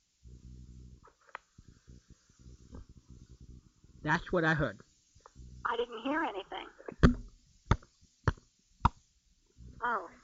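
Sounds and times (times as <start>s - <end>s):
speech: 4.0s - 4.9s
voice imitating champagne cork pops: 6.9s - 9.0s.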